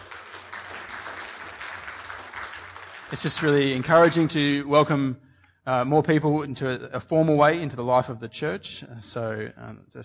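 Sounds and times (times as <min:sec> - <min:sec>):
church congregation clapping at an evening service: 0:00.0 - 0:04.6
speech: 0:03.1 - 0:10.0.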